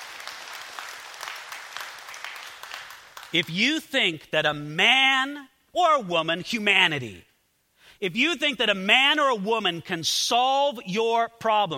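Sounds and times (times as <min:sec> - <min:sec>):
audience applause: 0:00.0 - 0:03.4
speech: 0:03.3 - 0:07.3, 0:08.0 - 0:11.7.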